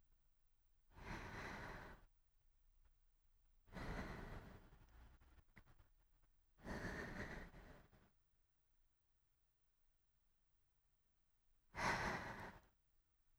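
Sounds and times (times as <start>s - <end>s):
sleeping breath: 0.9s - 2.1s, 3.7s - 5.7s, 6.6s - 8.1s, 11.7s - 12.7s.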